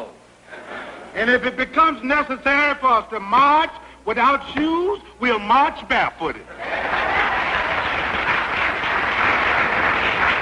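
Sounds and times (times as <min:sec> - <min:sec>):
speech: 0:01.2 - 0:06.9
large crowd clapping: 0:06.7 - 0:10.3.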